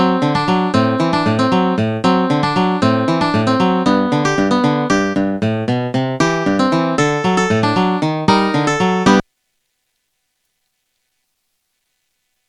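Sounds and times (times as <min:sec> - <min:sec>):
ragtime piece in G major: 0:00.0 - 0:09.2.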